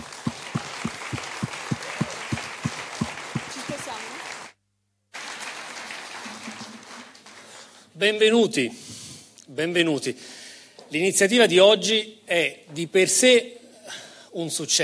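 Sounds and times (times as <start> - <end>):
regular thudding beat: 0.0 - 4.2
crowd applauding: 0.0 - 7.8
speech: 8.0 - 8.8, 9.6 - 14.8.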